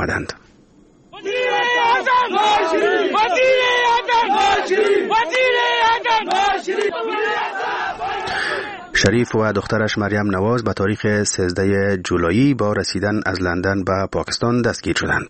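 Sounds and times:
speech: 0.0s - 0.5s, 9.0s - 15.2s
crowd of supporters chanting: 1.1s - 9.0s.

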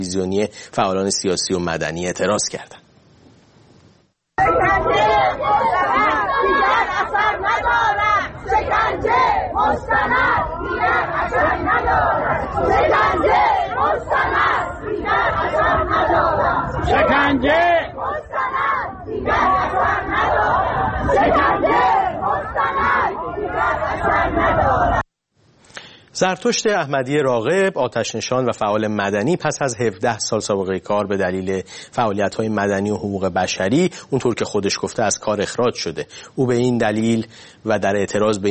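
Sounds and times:
speech: 0.0s - 2.8s, 26.2s - 38.4s
crowd of retirees chanting protest slogans: 4.4s - 25.0s.

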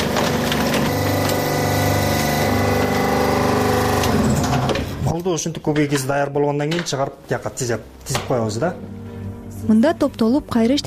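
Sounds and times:
press compacting recyclable waste at up to 8 tons: 0.0s - 5.0s
speech: 5.3s - 9.0s, 9.6s - 10.8s.

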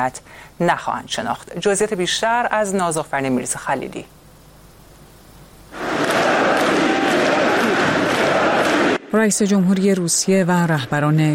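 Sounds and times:
speech: 0.0s - 4.2s, 9.1s - 11.3s
large crowd chanting and cheering in unison at a ceremony: 5.7s - 9.1s.

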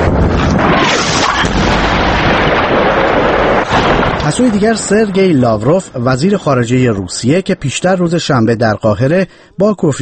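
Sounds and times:
artillery and tank fire: 0.0s - 5.6s
speech: 4.3s - 9.9s.

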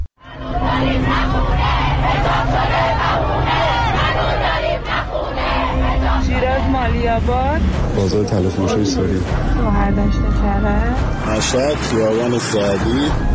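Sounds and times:
rally crowd chanting slogans and shouting: 0.2s - 13.3s
speech: 7.1s - 13.3s.

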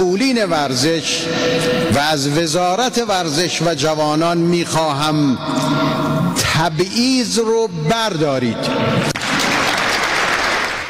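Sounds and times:
speech: 0.4s - 6.0s, 6.6s - 9.2s
crowd clapping for a speech about discrimination in sport: 9.1s - 10.8s.

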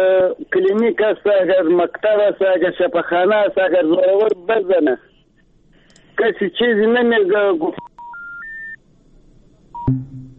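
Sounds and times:
speech: 0.0s - 5.1s, 6.2s - 7.9s
rising telephone tones: 8.0s - 8.8s
low hum: 9.8s - 10.3s
short beep: 9.8s - 10.3s.

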